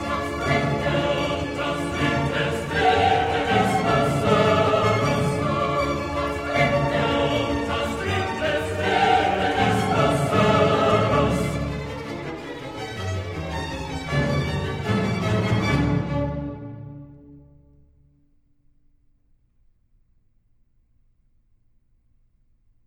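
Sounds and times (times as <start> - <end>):
requiem music: 0.0 - 18.0.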